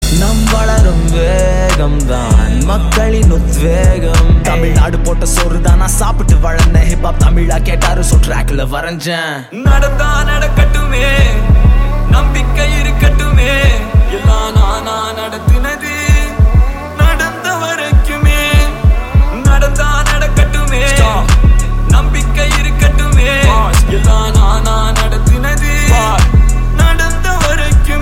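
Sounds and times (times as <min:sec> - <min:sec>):
indie music: 0:00.0 - 0:27.9.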